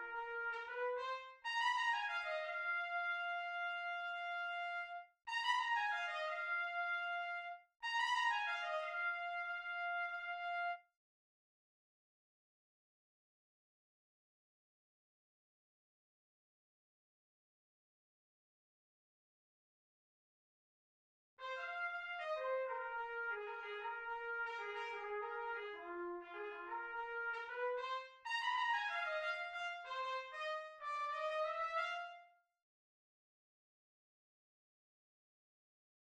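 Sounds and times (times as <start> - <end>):
trumpet in Bb: 0.0 - 10.8, 21.4 - 32.4.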